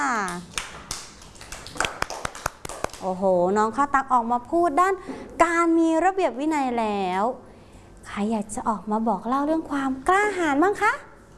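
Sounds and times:
children and teacher clapping for a pupil in class: 0.3 - 3.1
speech: 3.0 - 7.5, 8.2 - 11.1.

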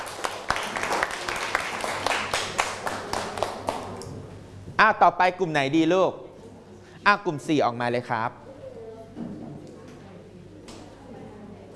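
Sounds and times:
group applauding: 0.0 - 4.1
low hum: 0.0 - 11.7
speech: 4.8 - 6.2, 7.1 - 8.4.

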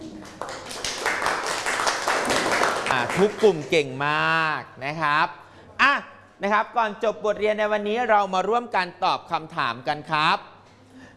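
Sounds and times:
classroom applause: 0.0 - 3.7
speech: 3.1 - 10.5.

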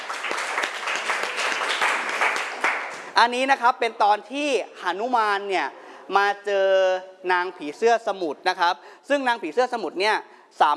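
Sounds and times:
group applauding: 0.0 - 3.2
speech: 3.2 - 10.7.

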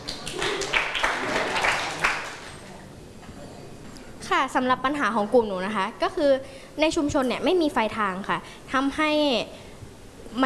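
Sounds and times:
students clapping in a classroom: 0.0 - 2.7
speech: 4.4 - 9.6.

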